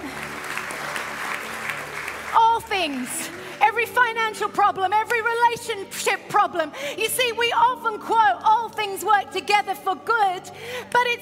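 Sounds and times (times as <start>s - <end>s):
audience applause: 0.0s - 3.6s
speech: 2.8s - 11.2s.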